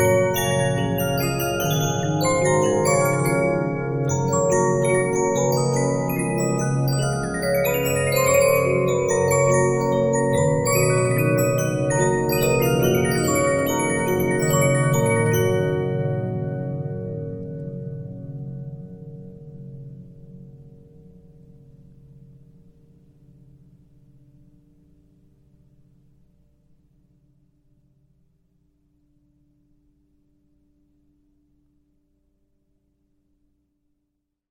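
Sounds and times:
Regina 15-inch disc music box: 0.0 - 18.4.

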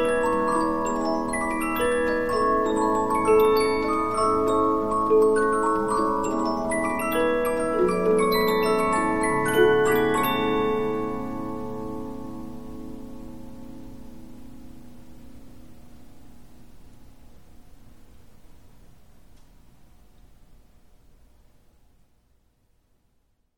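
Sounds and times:
15-inch Polyphon disc music box playing: 0.0 - 12.4.

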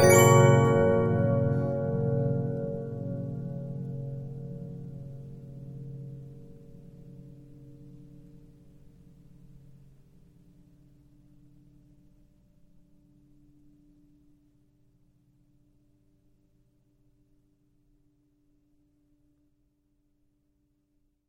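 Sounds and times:
Regina 15-inch disc music box: 0.0 - 3.6.

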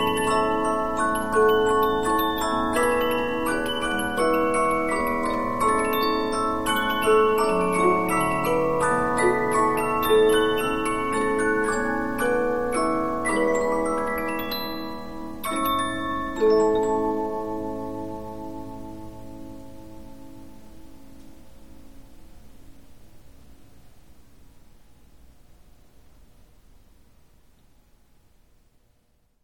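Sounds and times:
Polyphon 15-inch disc music box playing: 0.0 - 19.0.

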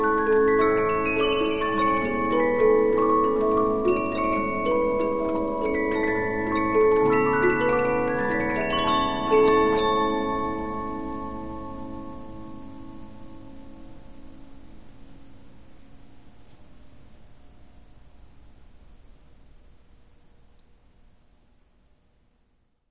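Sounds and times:
Polyphon 15-inch disc music box playing: 0.0 - 12.9.

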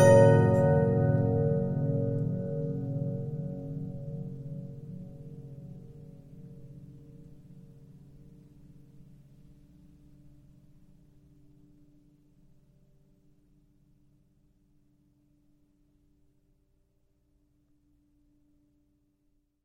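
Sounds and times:
Regina 15-inch disc music box: 0.0 - 4.1.

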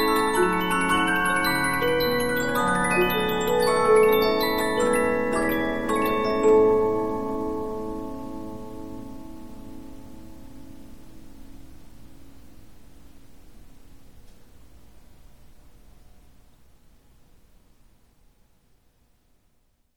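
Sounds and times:
Polyphon 15-inch disc music box playing: 0.0 - 8.2.

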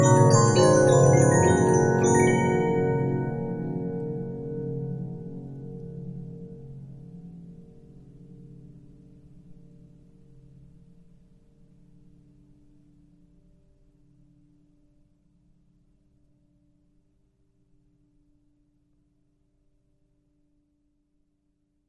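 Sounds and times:
Regina 15-inch disc music box: 0.0 - 4.3.

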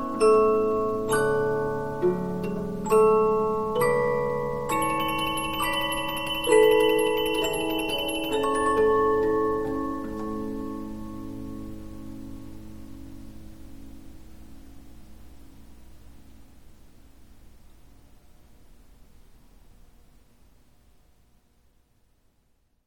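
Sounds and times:
Polyphon 15-inch disc music box playing: 0.0 - 11.8.

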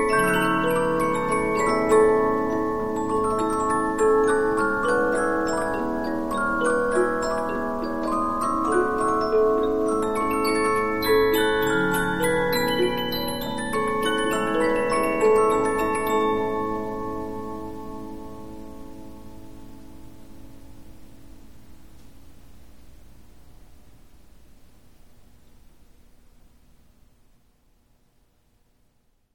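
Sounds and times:
Polyphon 15-inch disc music box playing: 0.0 - 18.2.

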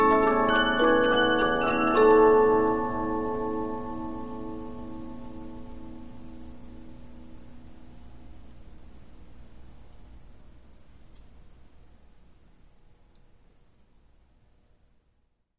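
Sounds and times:
15-inch Polyphon music box playing: 0.0 - 6.0.

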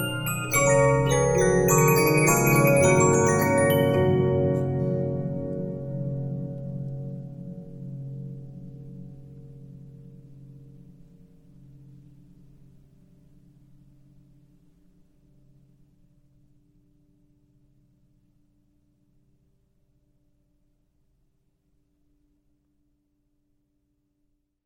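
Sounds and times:
Regina 15-inch disc music box: 0.0 - 6.2.

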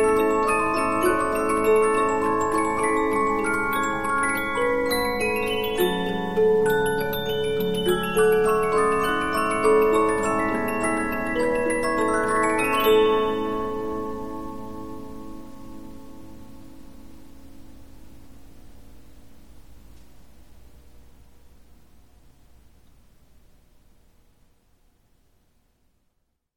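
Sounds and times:
Polyphon 15-inch disc music box playing: 0.0 - 15.5.

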